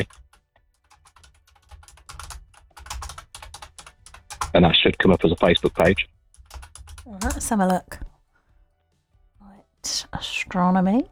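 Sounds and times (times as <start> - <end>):
speech: 0.0 - 0.2, 4.5 - 6.2, 7.2 - 8.0, 9.8 - 11.0
typing a Facebook search on a computer keyboard: 0.0 - 8.1.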